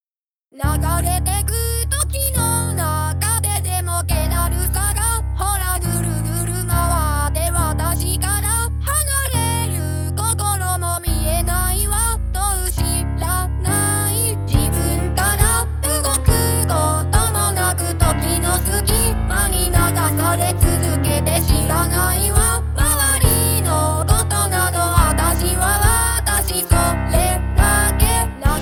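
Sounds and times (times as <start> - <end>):
vocaloid synthesized singing voice: 0.6 - 28.5.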